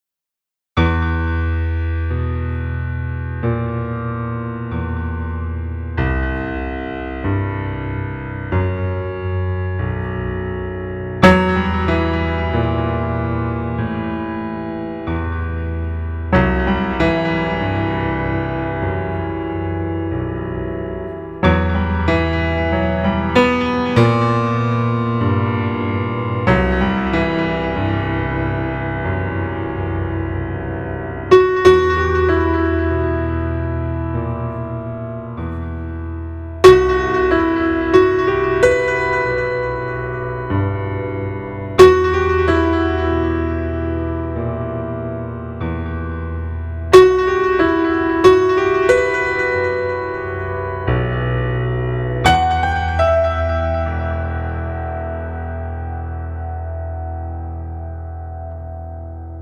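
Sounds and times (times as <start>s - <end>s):
piano: 0.8s - 59.4s.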